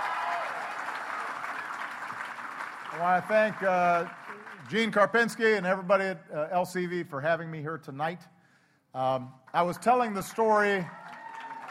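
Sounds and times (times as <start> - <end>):
audience applause at an environmental organization's event: 0.0 - 5.1, 9.7 - 11.6
speech: 3.0 - 8.3, 8.9 - 11.0.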